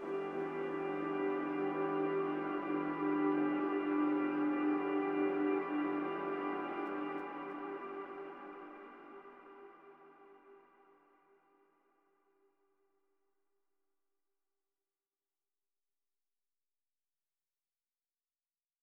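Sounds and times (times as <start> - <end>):
shimmer piano pad: 0.0 - 9.8.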